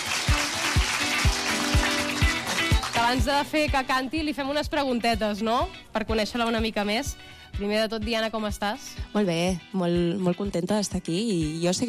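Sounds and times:
audience applause: 0.0s - 3.3s
speech: 3.1s - 11.8s.

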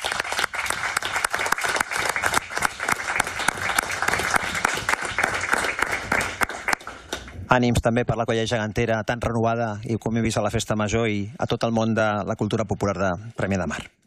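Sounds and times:
applause in memory of a deceased man at a gathering in Premià de Mar: 0.0s - 7.4s
speech: 7.5s - 14.0s.

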